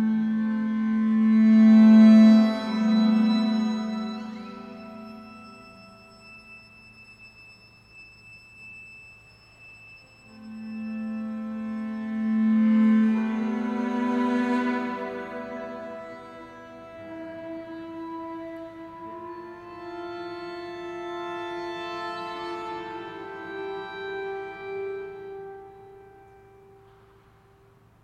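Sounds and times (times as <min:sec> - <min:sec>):
string quartet playing with lots of reverb: 0:00.0 - 0:05.3, 0:10.3 - 0:27.1.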